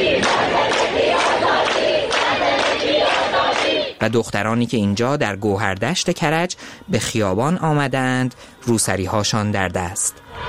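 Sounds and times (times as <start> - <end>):
protesters chanting slogans in the streets of Ekbatan, Tehran: 0.0 - 4.0, 8.3 - 10.4
speech: 4.0 - 10.4.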